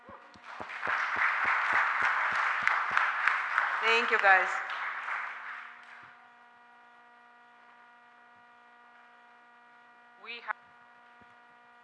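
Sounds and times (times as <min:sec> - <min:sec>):
audience applause: 0:00.0 - 0:06.2
speech: 0:03.8 - 0:04.6.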